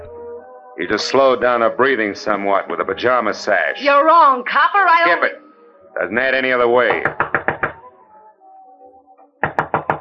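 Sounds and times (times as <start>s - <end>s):
speech: 0.8s - 5.4s, 6.0s - 7.3s
knocking on a door: 6.9s - 7.8s, 9.4s - 9.9s.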